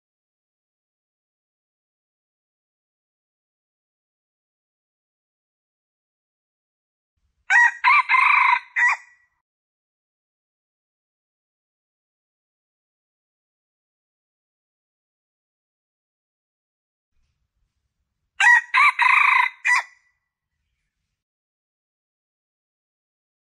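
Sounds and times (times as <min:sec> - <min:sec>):
Red junglefowl crowing: 0:07.5 - 0:09.1, 0:18.4 - 0:20.0.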